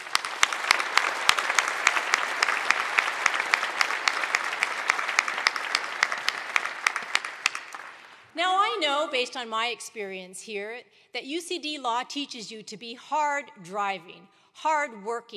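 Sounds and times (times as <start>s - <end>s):
audience applause: 0.0s - 8.3s
speech: 9.0s - 15.3s.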